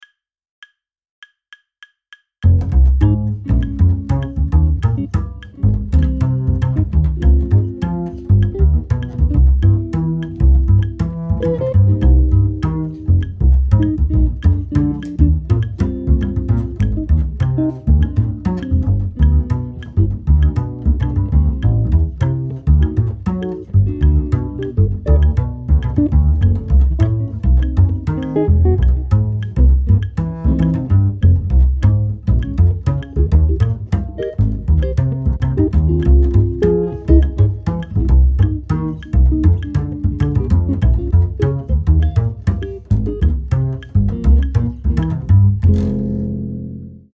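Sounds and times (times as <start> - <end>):
bass metronome ticking: 0.0 - 46.9.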